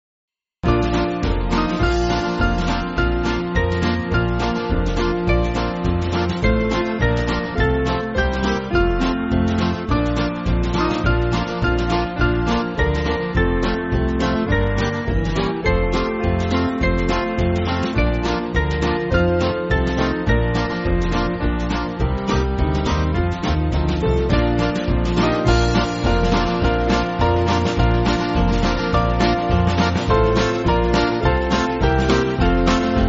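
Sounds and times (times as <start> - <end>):
band backing track for churches: 0.6 - 33.0.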